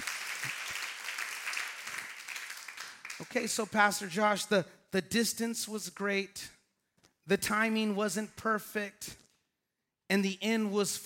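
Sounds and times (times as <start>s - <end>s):
crowd applause: 0.0s - 3.4s
speech: 3.2s - 6.6s, 7.3s - 9.2s, 10.1s - 11.0s.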